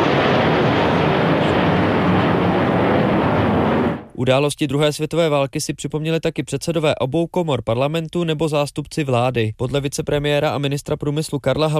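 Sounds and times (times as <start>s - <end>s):
military aircraft flying over Vítkov: 0.0s - 4.1s
speech: 4.2s - 11.7s.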